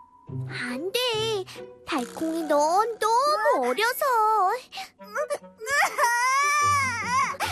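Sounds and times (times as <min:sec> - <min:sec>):
speech: 0:00.3 - 0:05.4
baby crying: 0:05.7 - 0:07.4.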